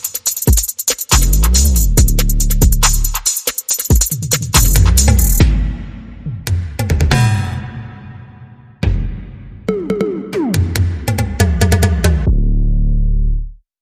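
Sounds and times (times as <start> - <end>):
percussion: 0.0 - 7.9, 8.8 - 12.4
bass: 1.2 - 3.3, 4.5 - 7.5, 11.0 - 13.6.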